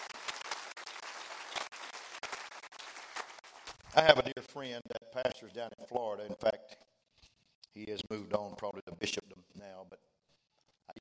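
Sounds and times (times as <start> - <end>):
audience clapping: 0.0 - 4.2
speech: 4.0 - 6.8, 7.8 - 10.0.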